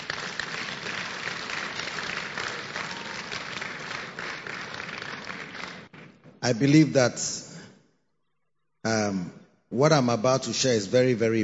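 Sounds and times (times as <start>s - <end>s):
audience clapping: 0.0s - 6.8s
speech: 6.4s - 7.4s, 9.8s - 11.4s.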